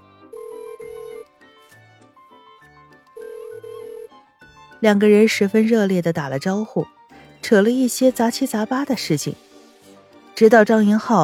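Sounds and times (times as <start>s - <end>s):
phone call ringing: 0.2s - 1.3s, 3.0s - 4.2s
speech: 4.8s - 9.4s, 10.4s - 11.2s.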